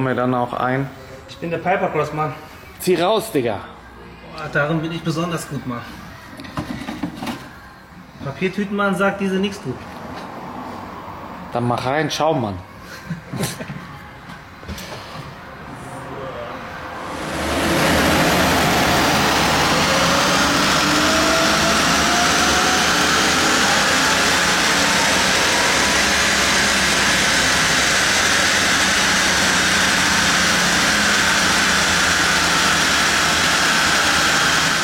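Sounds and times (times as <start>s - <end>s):
speech: 0.0s - 3.7s, 4.4s - 6.0s, 8.2s - 9.9s, 11.5s - 13.5s
engine clatter: 17.1s - 34.8s.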